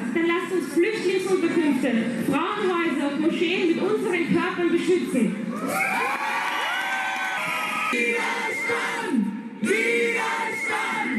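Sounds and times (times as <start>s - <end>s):
speech: 0.5s - 6.3s, 7.9s - 9.8s
high whoops: 5.5s - 8.0s
crowd cheering and shouting at a demonstration: 5.5s - 11.1s.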